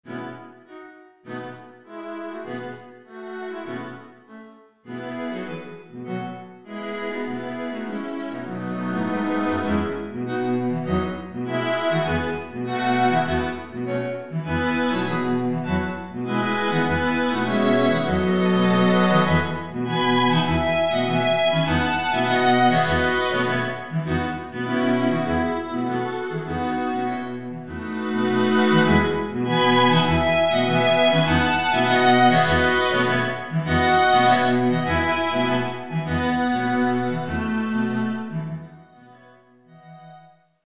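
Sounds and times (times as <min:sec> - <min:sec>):
string quintet: 0:00.0 - 0:40.3.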